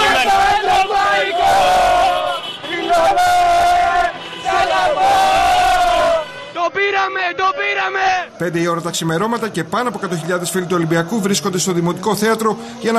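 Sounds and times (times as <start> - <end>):
Olympiacos fans honking car horns: 0.0 - 7.5
speech: 8.4 - 12.9.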